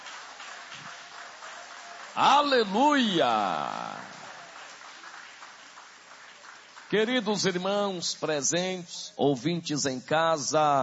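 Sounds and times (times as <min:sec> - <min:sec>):
audience applause: 0:00.0 - 0:07.8
speech: 0:02.2 - 0:04.0, 0:06.9 - 0:10.8.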